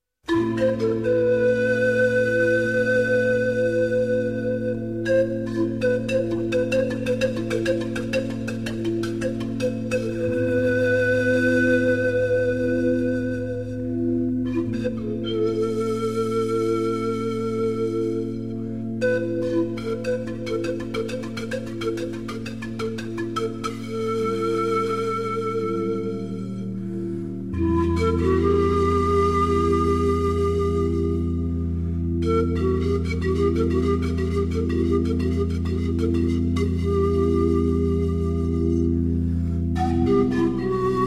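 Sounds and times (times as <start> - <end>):
pan flute: 0.2 - 41.0.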